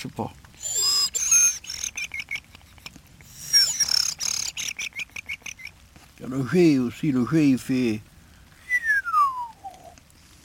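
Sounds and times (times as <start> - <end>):
speech: 0.0 - 0.8, 6.2 - 8.1
person whistling an imitation of thrush song: 0.6 - 2.4, 3.3 - 5.1, 8.6 - 9.9.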